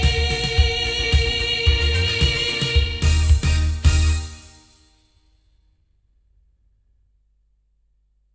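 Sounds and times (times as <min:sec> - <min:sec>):
loudspeakers: 0:00.0 - 0:04.4.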